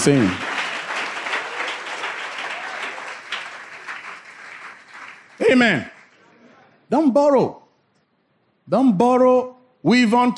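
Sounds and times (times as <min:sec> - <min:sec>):
speech: 0:00.0 - 0:00.4, 0:05.5 - 0:05.9, 0:06.9 - 0:07.6, 0:08.7 - 0:10.3
audience clapping: 0:00.0 - 0:06.2.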